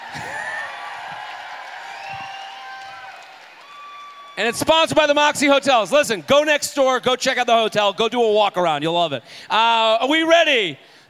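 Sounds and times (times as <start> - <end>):
audience applause: 0.0 - 4.7
whoops and whistles: 1.8 - 4.4
speech: 4.4 - 11.0.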